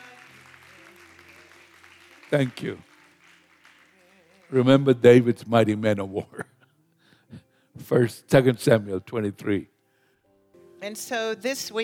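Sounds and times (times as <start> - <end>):
audience clapping: 0.0 - 5.3
speech: 2.3 - 2.9, 4.5 - 6.5, 7.3 - 9.7, 10.8 - 11.8.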